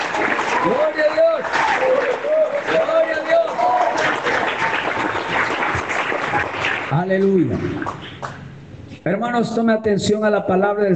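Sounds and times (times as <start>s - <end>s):
church congregation applauding: 0.0s - 8.4s
speech: 0.6s - 1.2s, 6.9s - 8.4s, 9.0s - 10.9s.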